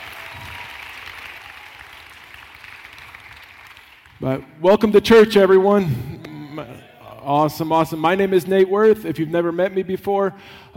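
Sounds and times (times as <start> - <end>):
audience applause: 0.0 - 4.2
speech: 4.2 - 10.7.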